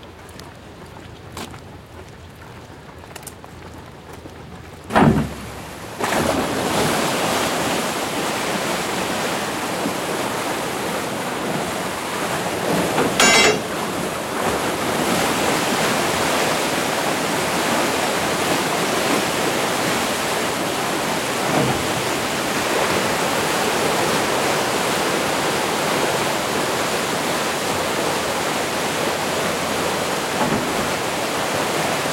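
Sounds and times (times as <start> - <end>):
water rushing out of an emptying canal lock: 4.9 - 32.1.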